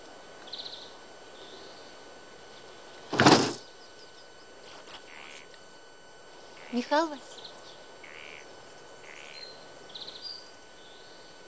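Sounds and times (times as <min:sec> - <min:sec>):
door being handled: 0:03.1 - 0:03.6
speech: 0:06.7 - 0:07.4.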